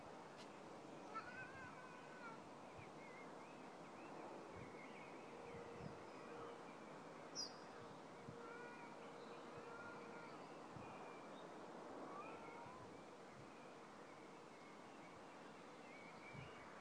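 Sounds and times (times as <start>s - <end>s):
birds: 0.3s - 16.7s
cat: 1.1s - 2.4s, 12.1s - 12.9s.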